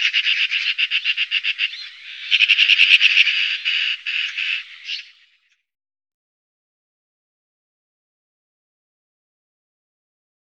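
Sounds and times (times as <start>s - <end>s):
black-billed magpie: 0.0s - 5.6s.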